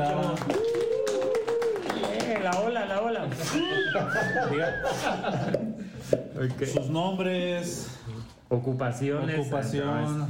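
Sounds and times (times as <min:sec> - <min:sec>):
audience clapping: 0:00.0 - 0:03.6
speech: 0:02.4 - 0:05.8, 0:06.4 - 0:10.2
laughter: 0:03.4 - 0:06.0.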